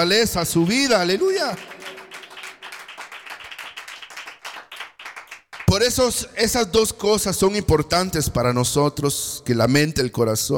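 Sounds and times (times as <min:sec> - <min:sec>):
speech: 0:00.0 - 0:02.0, 0:05.8 - 0:10.5
audience clapping: 0:00.0 - 0:06.0.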